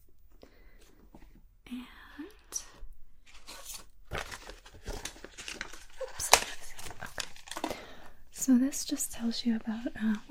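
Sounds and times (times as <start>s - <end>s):
cardboard packaging being handled: 3.2s - 8.0s
cardboard snapping or tearing: 3.6s - 7.7s
speech: 8.5s - 10.3s.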